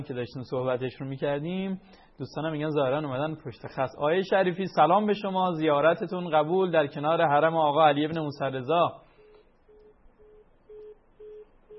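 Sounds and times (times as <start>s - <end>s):
speech: 0.0s - 9.0s
telephone busy tone after a caller's line dropped: 9.1s - 11.7s.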